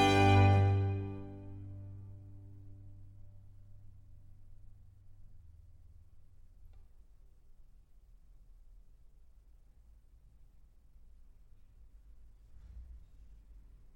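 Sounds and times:
string orchestra playing an allegro in G major: 0.0 - 2.2.

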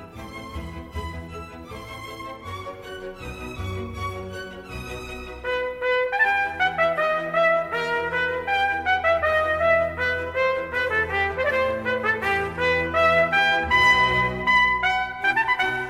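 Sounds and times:
trumpet concerto gavotte in E minor: 5.2 - 15.8.

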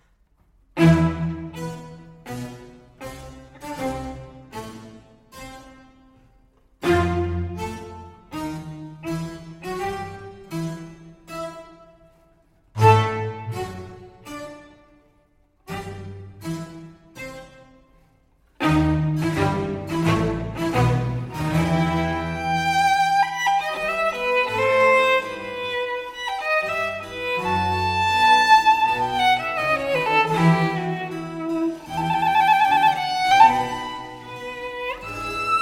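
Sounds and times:
violin and strings largo in C major: 0.8 - 5.9, 6.8 - 12.1, 12.8 - 14.9, 15.7 - 17.8, 18.5 - 35.6.

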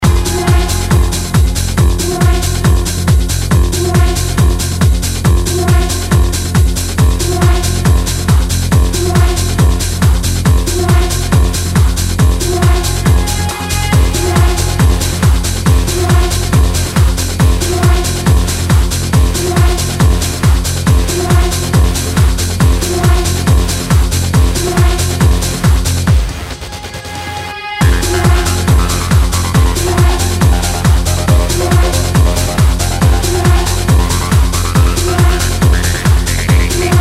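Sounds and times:
trance music: 0.0 - 37.0.

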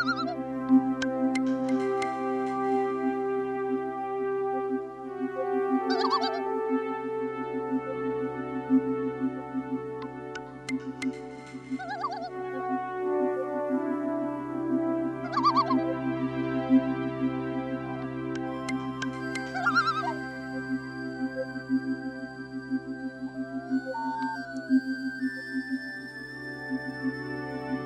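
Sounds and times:
loon wavering calls: 0.0 - 0.4, 5.9 - 6.4, 11.7 - 12.3, 15.2 - 15.9, 19.4 - 20.3, 23.1 - 25.6
musical drone: 0.0 - 27.8.

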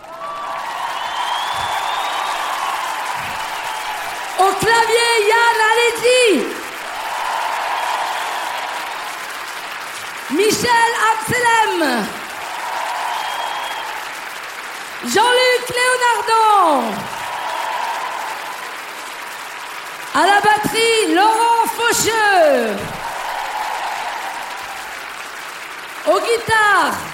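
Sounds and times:
audience applause welcoming the orchestra: 0.0 - 27.1
speech: 4.4 - 6.6, 10.6 - 12.2, 15.1 - 17.1, 20.2 - 23.0, 26.1 - 27.1.

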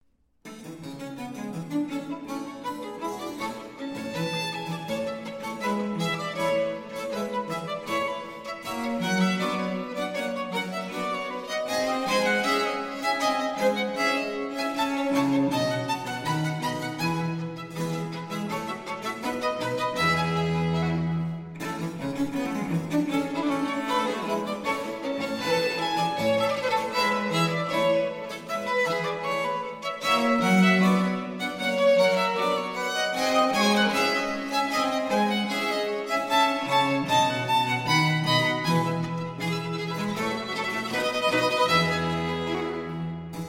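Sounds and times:
trio sonata gavotte presto in B-flat major: 0.4 - 43.4.

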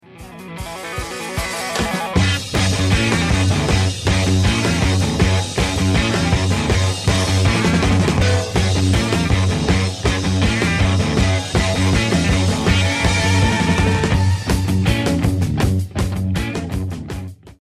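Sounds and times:
guitar: 0.0 - 17.5.

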